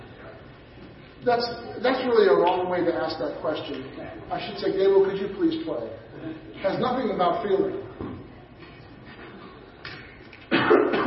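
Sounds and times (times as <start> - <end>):
speech: 1.2 - 7.9
person coughing after something went down the wrong pipe: 10.5 - 11.0.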